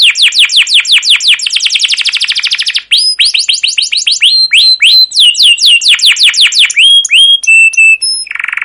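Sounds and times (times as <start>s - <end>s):
canary song with varied high trills, chirp runs and whistled notes: 0.0s - 8.6s.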